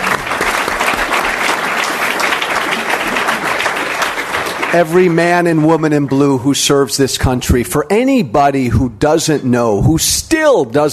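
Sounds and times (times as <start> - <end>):
crowd applause: 0.0 - 5.6
speech: 4.7 - 10.9.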